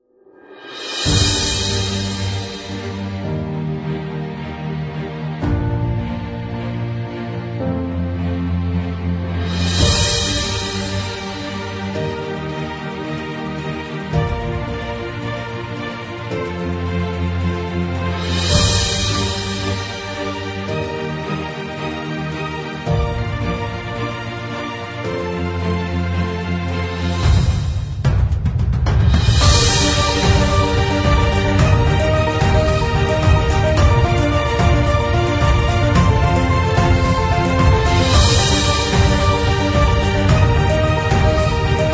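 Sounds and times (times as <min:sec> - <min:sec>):
epic music without solo: 0:00.3 - 0:41.9.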